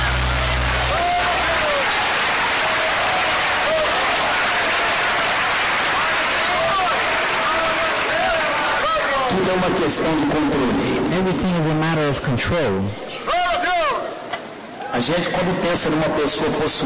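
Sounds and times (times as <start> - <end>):
congregation applause during a church service: 0.0 - 10.2
speech: 9.6 - 13.3, 15.0 - 16.8.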